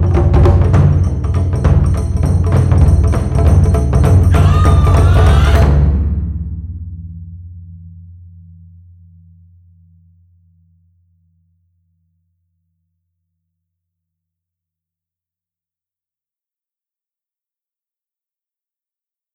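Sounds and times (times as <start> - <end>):
taiko drum overture: 0.0 - 7.0.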